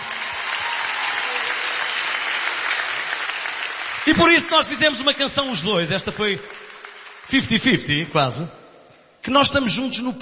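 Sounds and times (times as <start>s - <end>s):
audience applause: 0.0s - 8.0s
speech: 4.0s - 6.6s, 7.3s - 8.6s, 9.2s - 10.2s.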